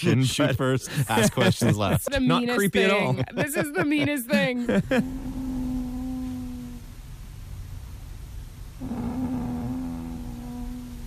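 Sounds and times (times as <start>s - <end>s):
laughter: 0.0s - 5.1s
speech: 0.0s - 5.2s
woman snoring: 4.9s - 6.8s, 8.8s - 11.0s.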